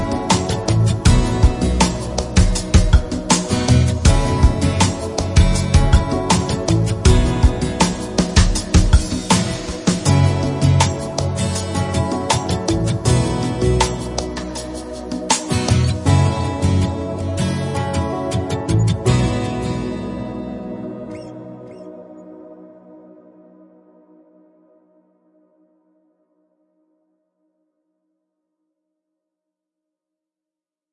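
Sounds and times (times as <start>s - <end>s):
night jazz beats: 0.0s - 21.9s.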